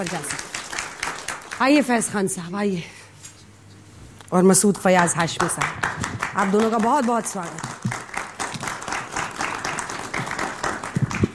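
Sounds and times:
speech: 0.0 - 0.5, 1.6 - 3.0, 4.3 - 8.0
audience clapping: 0.0 - 2.0, 5.2 - 11.3.

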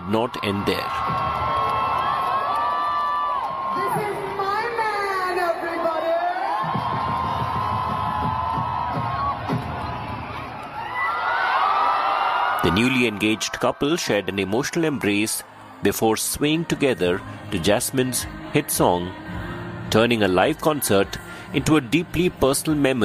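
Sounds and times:
large concert crowd cheering: 0.0 - 15.4
speech: 0.1 - 1.2, 12.7 - 19.3, 19.9 - 23.0
high-pitched screams and whoops: 0.9 - 3.8, 6.4 - 12.7.

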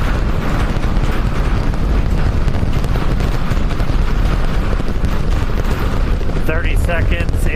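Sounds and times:
Super Heavy rocket booster launch roar with 33 Raptor engines at Starbase: 0.0 - 7.5.

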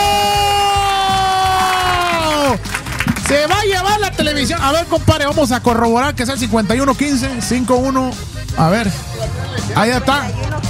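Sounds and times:
crowd cheering and applauding: 0.0 - 4.2
rhythmic low thumps: 0.0 - 10.6
speech: 3.7 - 10.6.

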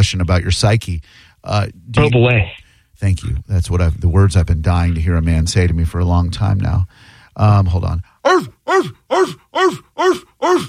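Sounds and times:
speech: 0.1 - 10.6
Ecuadorian dogs barking: 8.2 - 10.6.

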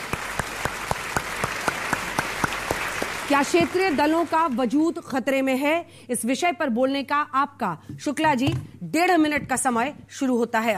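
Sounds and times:
audience applause welcoming guests: 0.0 - 4.6
speech: 3.3 - 10.7.

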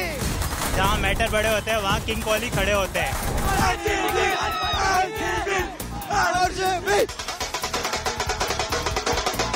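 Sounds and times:
speech: 0.8 - 7.3
cricket fans roaring outside Narendra Modi Stadium in Ahmedabad: 3.3 - 9.5
cricket fans chanting outside Narendra Modi Stadium in Ahmedabad: 3.4 - 7.1.

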